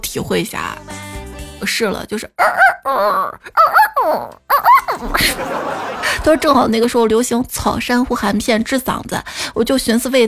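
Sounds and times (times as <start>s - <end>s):
speech: 0.0s - 1.0s, 1.6s - 10.2s
person imitating rooster crow with falling third note: 2.4s - 5.2s
laughter: 2.4s - 6.9s.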